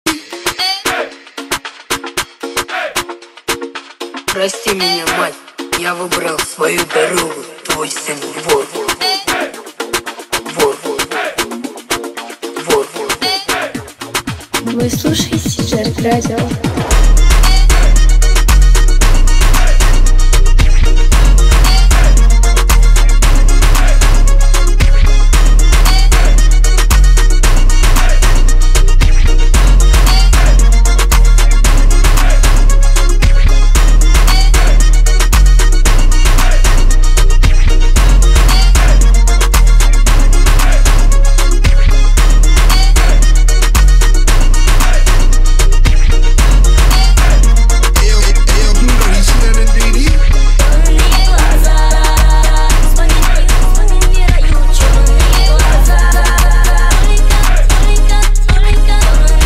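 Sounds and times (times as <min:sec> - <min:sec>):
lezginka jerk type beat: 0:00.0 - 0:59.4.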